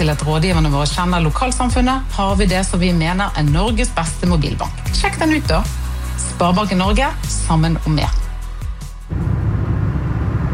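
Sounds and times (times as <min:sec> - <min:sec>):
speech: 0:00.0 - 0:08.2
car driving fast: 0:09.1 - 0:10.5.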